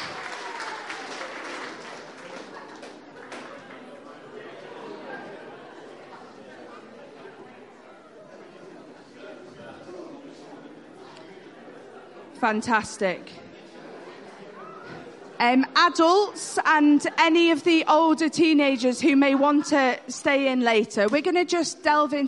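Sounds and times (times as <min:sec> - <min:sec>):
crowd clapping: 0:00.0 - 0:04.0
speech: 0:12.4 - 0:13.4, 0:15.4 - 0:22.2.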